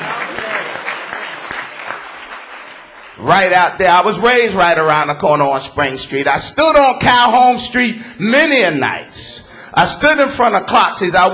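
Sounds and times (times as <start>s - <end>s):
audience clapping: 0.0s - 3.8s
speech: 3.2s - 11.3s.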